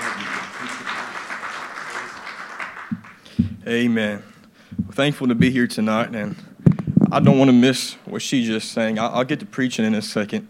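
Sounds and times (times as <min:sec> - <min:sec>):
audience applause: 0:00.0 - 0:03.4
speech: 0:03.7 - 0:04.3, 0:05.0 - 0:06.4, 0:07.1 - 0:10.4.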